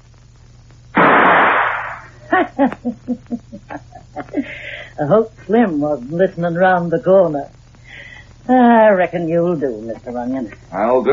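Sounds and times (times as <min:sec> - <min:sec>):
gunshot at a door lock: 0:01.0 - 0:02.1
speech: 0:02.4 - 0:07.6, 0:08.5 - 0:11.1.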